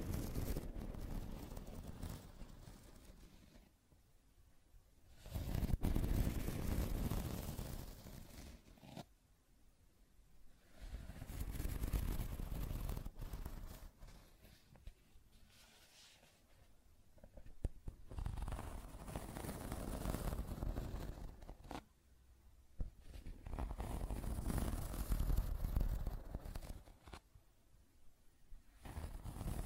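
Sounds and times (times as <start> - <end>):
rough scratching and tracing strokes: 0.0 - 3.7, 5.1 - 9.1, 10.6 - 14.8, 18.2 - 21.8, 23.1 - 27.2, 28.8 - 29.6.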